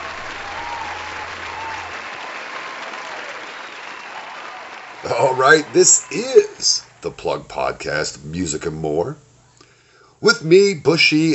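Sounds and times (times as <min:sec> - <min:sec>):
applause sound effect: 0:00.0 - 0:07.0
speech: 0:05.0 - 0:09.3, 0:10.2 - 0:11.3.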